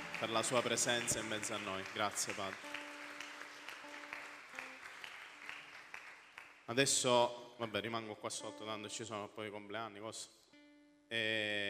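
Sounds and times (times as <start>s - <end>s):
audience applauding: 0.0s - 6.7s
speech: 0.2s - 2.8s, 6.7s - 10.4s, 11.1s - 11.6s.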